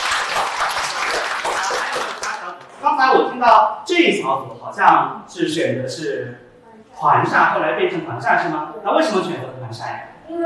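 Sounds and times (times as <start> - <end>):
audience applause: 0.0 - 2.6
speech: 3.0 - 6.4, 7.0 - 10.4.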